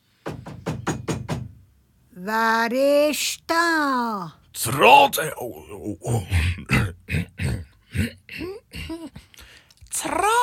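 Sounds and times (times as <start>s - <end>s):
knocking on a wooden door: 0.2s - 1.6s
speech: 2.2s - 7.3s, 8.0s - 9.2s.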